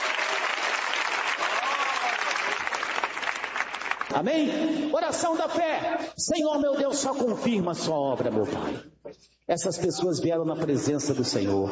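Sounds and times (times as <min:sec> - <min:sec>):
audience clapping hands: 0:00.0 - 0:04.3
speech: 0:04.1 - 0:08.9, 0:09.5 - 0:11.7.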